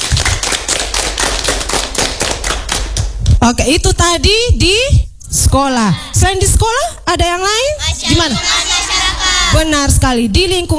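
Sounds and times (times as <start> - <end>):
class applauding: 0.0 - 3.1
speech: 3.4 - 8.6, 9.5 - 10.7.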